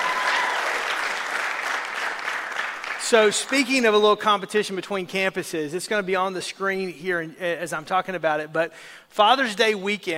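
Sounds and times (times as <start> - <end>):
crowd applauding: 0.0 - 3.9
speech: 3.1 - 10.1.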